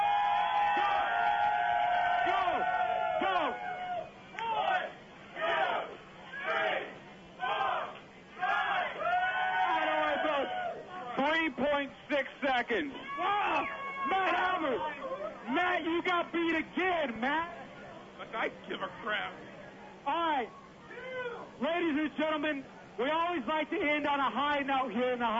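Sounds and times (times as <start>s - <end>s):
audience cheering: 0.0s - 11.3s, 12.7s - 16.0s
speech: 12.6s - 17.6s, 18.2s - 20.6s, 21.6s - 25.3s.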